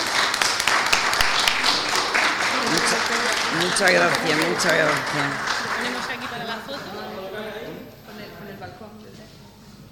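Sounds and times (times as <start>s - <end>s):
crowd applauding: 0.0s - 6.7s
speech: 3.6s - 5.5s.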